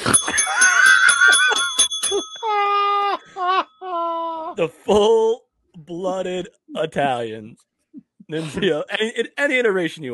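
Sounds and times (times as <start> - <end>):
bell clanging: 0.0 - 2.8
speech: 4.6 - 7.7, 8.3 - 10.1.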